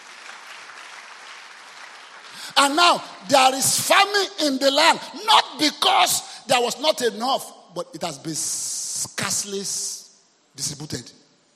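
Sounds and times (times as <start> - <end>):
audience clapping hands: 0.0 - 3.1
speech: 2.5 - 10.0, 10.6 - 11.2.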